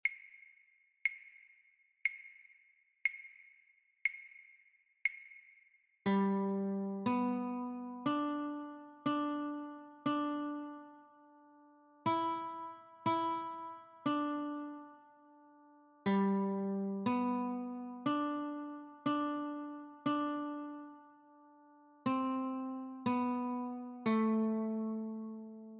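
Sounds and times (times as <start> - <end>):
guitar notes: 6.1 - 25.7.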